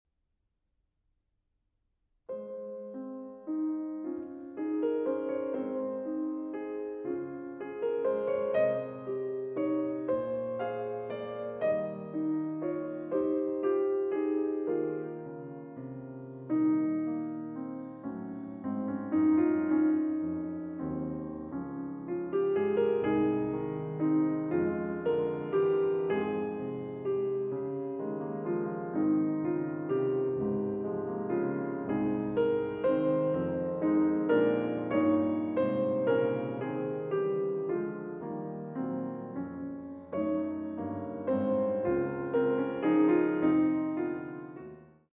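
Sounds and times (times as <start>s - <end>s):
slow piano suite piece: 2.3s - 45.1s.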